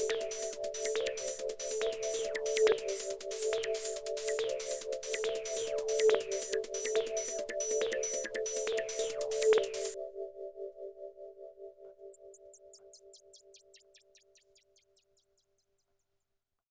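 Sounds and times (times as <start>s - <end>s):
Kawai K3 pure ambient sound: 0.0s - 12.7s.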